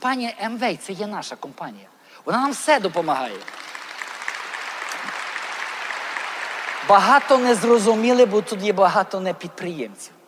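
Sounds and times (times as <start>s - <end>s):
speech: 0.0s - 3.7s, 6.9s - 10.2s
audience applause: 3.2s - 9.0s.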